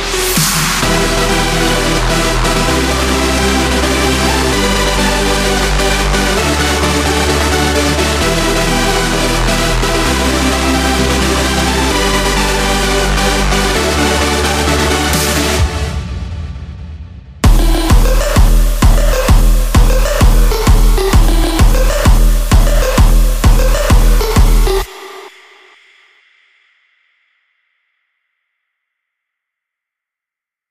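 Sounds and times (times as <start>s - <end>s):
electronic festival music: 0.0s - 16.4s, 17.4s - 25.9s.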